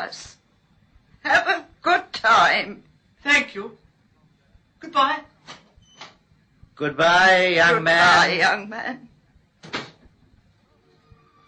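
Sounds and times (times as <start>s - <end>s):
speech: 0.0s - 0.4s, 1.2s - 3.8s, 4.8s - 5.3s, 6.8s - 9.1s
door closing behind a young man leaving: 9.6s - 10.1s.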